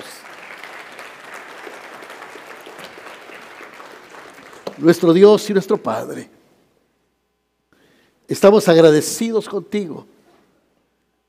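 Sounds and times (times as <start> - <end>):
audience applause: 0.0 - 5.2
speech: 4.8 - 6.4, 8.3 - 10.2.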